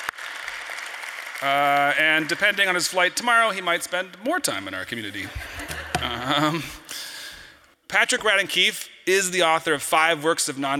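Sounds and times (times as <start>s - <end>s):
audience applause: 0.0s - 2.7s
speech: 1.4s - 7.0s, 7.9s - 10.7s
laughter: 5.2s - 6.9s.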